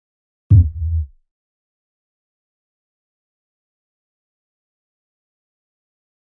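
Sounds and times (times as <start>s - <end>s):
LFE electronic thump with low tremolo tail: 0.5s - 1.1s.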